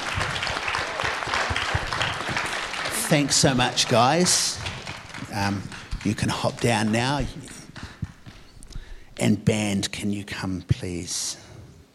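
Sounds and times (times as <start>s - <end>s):
crowd applause: 0.0s - 8.6s
speech: 3.1s - 4.7s, 5.3s - 7.4s, 9.2s - 11.4s.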